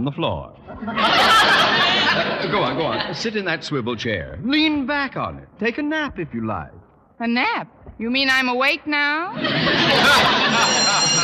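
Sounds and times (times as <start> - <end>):
speech: 0.0 - 11.0
laughter: 0.7 - 3.5, 9.3 - 11.2
school bell ringing: 10.0 - 11.2.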